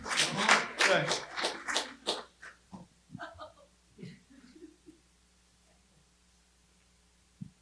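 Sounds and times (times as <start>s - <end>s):
soft claps: 0.0s - 2.9s.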